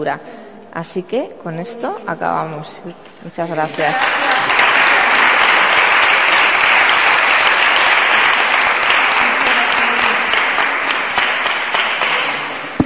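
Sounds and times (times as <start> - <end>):
speech: 0.0 - 4.3
audience applause: 3.7 - 12.8.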